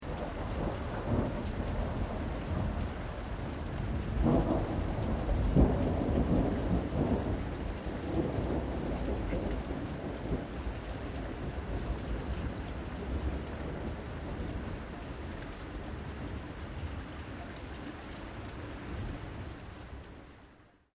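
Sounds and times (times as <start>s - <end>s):
distant low thunder: 0.0s - 16.6s
rain: 0.0s - 20.9s.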